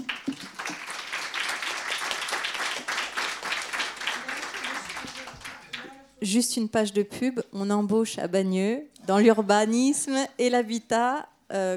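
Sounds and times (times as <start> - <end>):
audience applause: 0.0 - 6.0
speech: 6.2 - 11.7.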